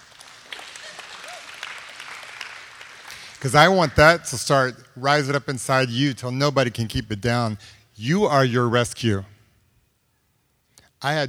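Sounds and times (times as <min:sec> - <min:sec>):
audience applause: 0:00.0 - 0:03.5
speech: 0:03.4 - 0:09.3, 0:11.0 - 0:11.2.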